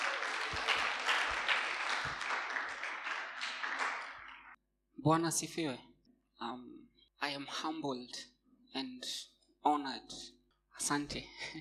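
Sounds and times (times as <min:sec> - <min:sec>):
audience clapping for arriving speaker: 0:00.0 - 0:04.6
speech: 0:05.0 - 0:11.6.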